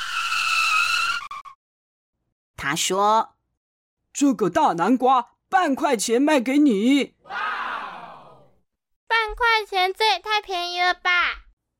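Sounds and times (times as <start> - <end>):
skidding emergency brake screech: 0.0 - 1.6
speech: 2.6 - 3.4, 4.2 - 7.4, 9.6 - 11.2.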